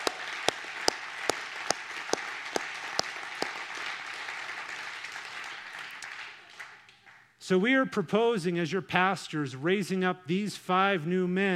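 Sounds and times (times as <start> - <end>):
audience applause: 0.0 - 7.2
rhythmic sharp claps: 0.0 - 7.2
speech: 7.5 - 11.5.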